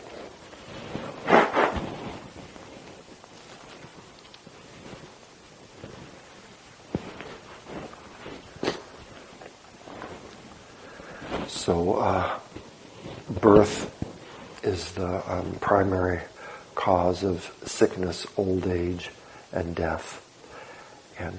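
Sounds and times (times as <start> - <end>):
person blowing nose: 1.2 - 1.9, 8.6 - 8.9
speech: 11.7 - 12.4, 13.4 - 13.9, 14.8 - 20.2, 21.2 - 21.3.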